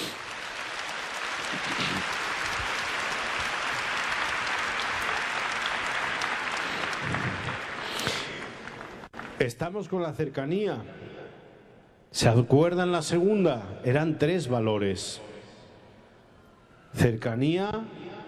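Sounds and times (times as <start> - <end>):
audience applause: 0.0 - 9.5
speech: 9.4 - 11.1, 12.1 - 15.3, 16.9 - 18.0.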